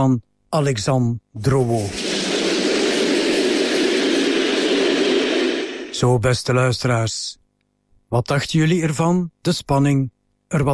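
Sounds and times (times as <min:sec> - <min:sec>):
speech: 0:00.0 - 0:02.0, 0:06.0 - 0:07.4, 0:08.1 - 0:10.7
train braking as it enters station: 0:01.8 - 0:06.2.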